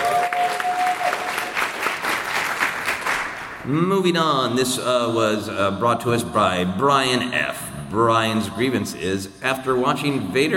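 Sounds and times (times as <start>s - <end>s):
round of applause: 0.0s - 3.6s
speech: 3.7s - 10.5s.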